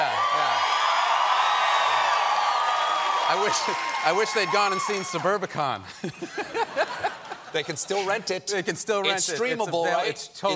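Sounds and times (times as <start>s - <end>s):
raucous studio audience cheering: 0.0s - 5.6s
speech: 3.3s - 10.5s
laughter: 5.9s - 8.3s.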